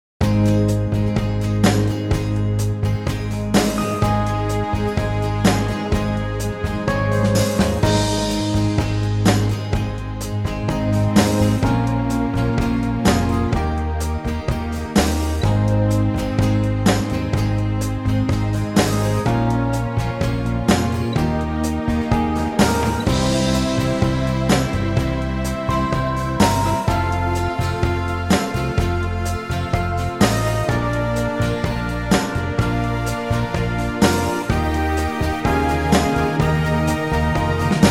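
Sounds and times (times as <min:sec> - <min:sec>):
backing track: 0:00.2 - 0:37.8.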